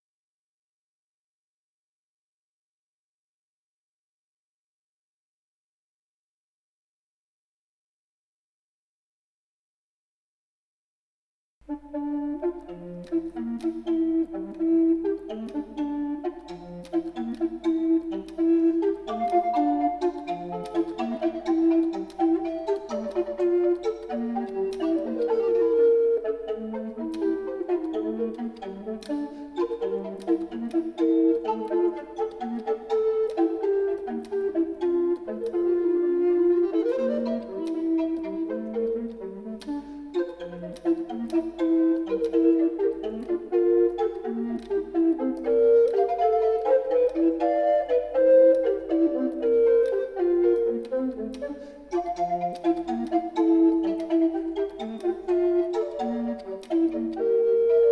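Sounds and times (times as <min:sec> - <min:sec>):
two recorders playing a petit allegro: 0:11.6 - 0:57.9.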